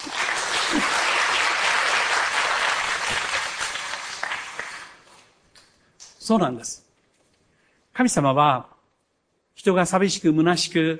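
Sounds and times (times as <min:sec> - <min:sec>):
audience applause: 0:00.0 - 0:05.1
speech: 0:06.3 - 0:06.9, 0:08.0 - 0:08.7, 0:09.6 - 0:10.9.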